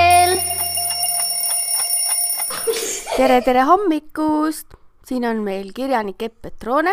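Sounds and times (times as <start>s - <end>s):
alarm clock ringing: 0.1s - 3.0s
speech: 3.2s - 6.9s.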